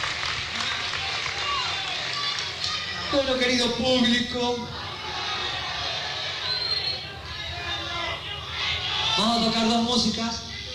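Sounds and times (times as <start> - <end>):
audience applause: 0.0 - 3.1
murmur of voices: 0.4 - 10.7
speech: 3.1 - 4.8, 9.2 - 10.5.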